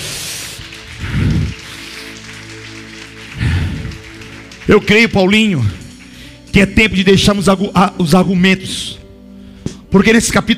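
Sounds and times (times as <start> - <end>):
audience applauding: 0.0 - 6.4
speech: 4.7 - 5.8, 6.6 - 9.0, 9.9 - 10.5.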